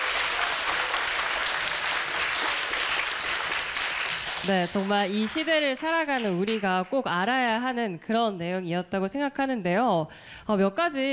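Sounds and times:
audience applause: 0:00.0 - 0:06.8
speech: 0:04.4 - 0:11.1.

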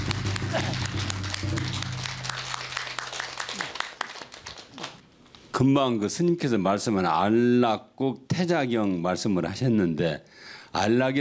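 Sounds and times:
audience applause: 0:00.0 - 0:05.0
speech: 0:05.6 - 0:11.1.

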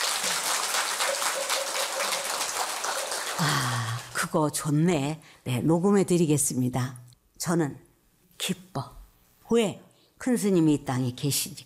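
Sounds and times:
audience applause: 0:00.0 - 0:04.2
speech: 0:04.3 - 0:07.8, 0:08.4 - 0:11.6.

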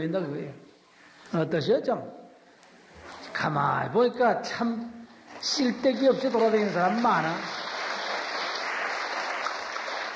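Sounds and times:
speech: 0:00.0 - 0:00.7, 0:01.3 - 0:02.2, 0:03.4 - 0:07.6
audience clapping: 0:05.3 - 0:10.1.

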